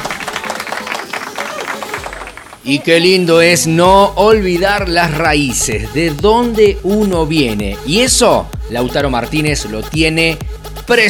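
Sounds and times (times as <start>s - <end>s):
audience applause: 0.0s - 3.1s
speech: 2.6s - 11.0s.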